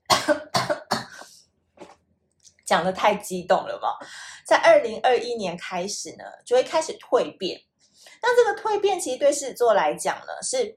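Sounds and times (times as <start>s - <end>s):
person coughing from an itchy throat: 0.0s - 1.3s
speech: 2.7s - 10.7s.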